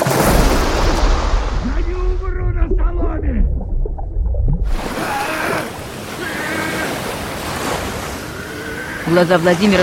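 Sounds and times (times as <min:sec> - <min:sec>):
bubbles rising and water churning in murky water: 0:00.0 - 0:09.8
low rumble under water: 0:00.3 - 0:04.9
speech: 0:09.1 - 0:09.8.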